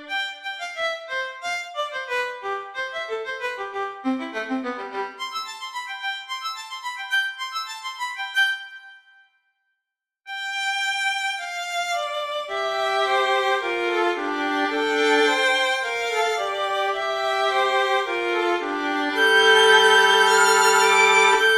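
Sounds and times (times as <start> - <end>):
violin solo: 0.0 - 8.5, 10.3 - 21.5.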